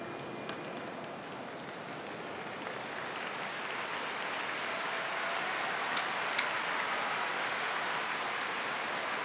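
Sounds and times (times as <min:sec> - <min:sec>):
applause in a sumo arena: 0:00.2 - 0:09.2.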